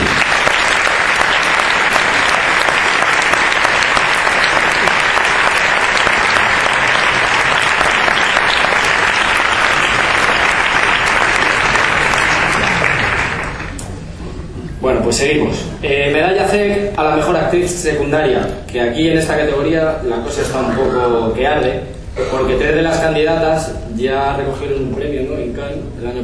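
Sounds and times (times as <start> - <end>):
audience applause: 0.0 - 13.8
speech: 15.1 - 26.2.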